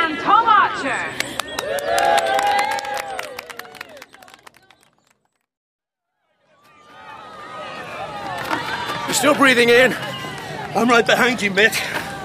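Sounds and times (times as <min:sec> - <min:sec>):
crowd cheering: 0:01.2 - 0:05.0, 0:06.3 - 0:12.2
speech: 0:09.2 - 0:10.1, 0:10.8 - 0:12.2.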